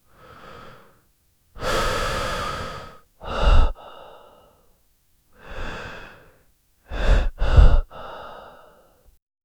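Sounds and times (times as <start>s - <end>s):
sharp quiet intake of breath: 0.1s - 1.0s, 1.6s - 4.7s, 5.4s - 9.0s.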